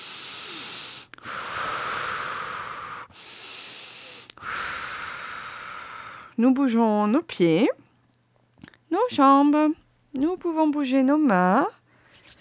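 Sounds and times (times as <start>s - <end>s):
deep slow breaths during a guided relaxation exercise: 0.0s - 6.4s
speech: 6.4s - 7.8s, 9.0s - 12.4s.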